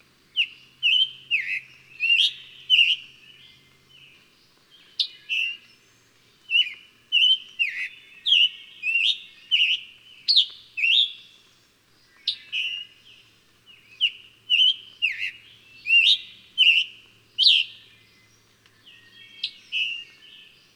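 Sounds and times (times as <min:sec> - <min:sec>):
bird singing whistled phrases: 0:00.4 - 0:03.1, 0:06.5 - 0:11.3, 0:13.8 - 0:18.2, 0:18.8 - 0:20.6.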